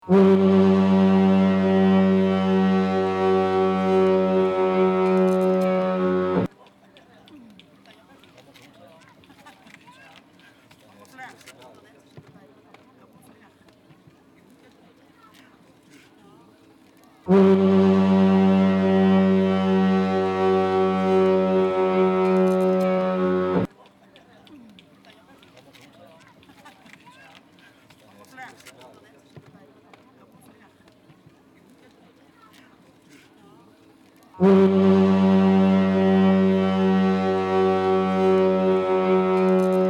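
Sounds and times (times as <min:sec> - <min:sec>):
fog horn of Lindesnes lighthouse: 0:00.0 - 0:06.5, 0:17.3 - 0:23.7, 0:34.4 - 0:39.8.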